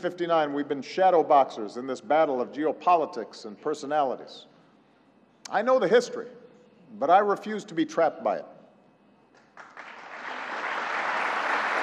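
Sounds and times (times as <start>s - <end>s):
speech: 0.0s - 4.5s, 5.5s - 8.6s
brief applause from audience: 9.4s - 11.8s.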